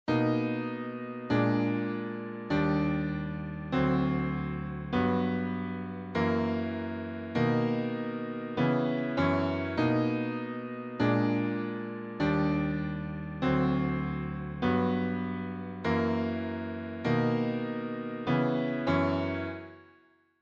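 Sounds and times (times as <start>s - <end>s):
piano: 0.0s - 20.4s.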